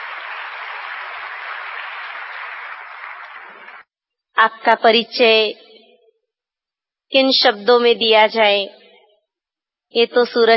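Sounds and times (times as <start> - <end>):
crowd applauding welcoming a speaker: 0.0 - 3.8
speech: 4.4 - 5.6, 7.1 - 8.8, 9.9 - 10.5.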